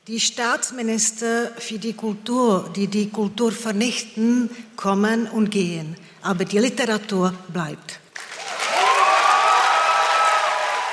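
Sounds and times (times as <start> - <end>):
speech: 0.1 - 8.0
crowd cheering and applauding: 8.2 - 10.9
whoops: 8.4 - 10.9.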